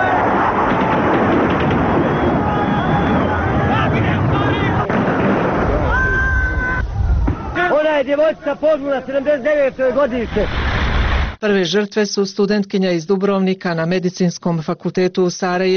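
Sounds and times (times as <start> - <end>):
crowd of citizens noise and shouting: 0.0 - 7.7
gunfire of an army shooting into a crowd of citizens: 0.4 - 2.4, 4.8 - 5.8
speech: 8.2 - 10.6, 11.4 - 15.7.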